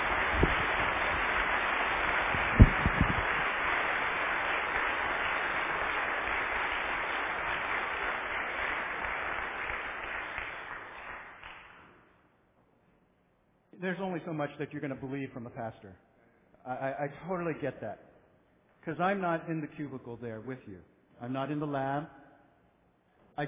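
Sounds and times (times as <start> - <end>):
audience applause: 0.0 - 11.9
speech: 13.9 - 18.1, 18.8 - 22.2.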